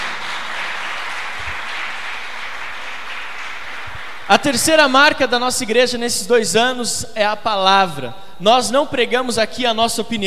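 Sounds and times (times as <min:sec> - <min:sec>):
crowd applauding: 0:00.0 - 0:04.5
speech: 0:04.3 - 0:10.2.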